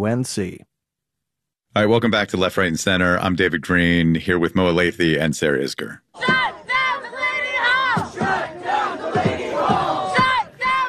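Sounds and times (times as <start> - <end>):
speech: 0.0 - 0.7, 1.7 - 6.4
protesters shouting outside Delaney Hall detention center: 6.2 - 10.8.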